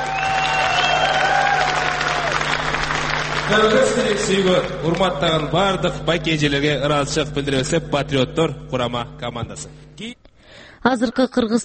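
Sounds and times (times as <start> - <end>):
audience applause honoring a Kyrgyz patriots' team: 0.0 - 5.4
speech: 3.5 - 11.6.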